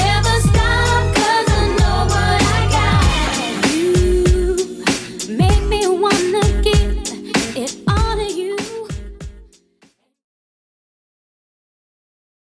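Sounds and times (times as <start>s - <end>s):
1990s style drum beat: 0.0s - 9.6s.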